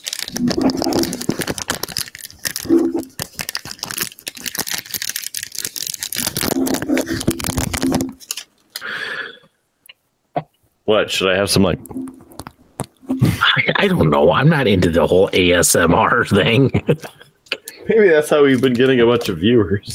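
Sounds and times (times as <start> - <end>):
aluminium foil crinkling and tearing as it is opened: 0.0 - 8.9
speech: 10.9 - 12.0, 13.8 - 17.2, 17.9 - 19.9.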